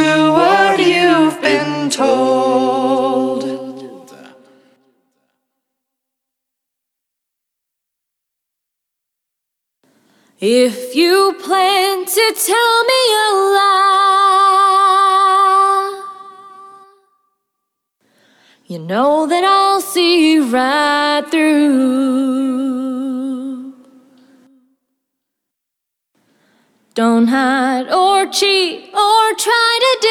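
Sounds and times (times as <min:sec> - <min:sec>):
vocals: 0:00.0 - 0:04.9, 0:09.9 - 0:17.1, 0:18.1 - 0:24.8, 0:26.2 - 0:30.0.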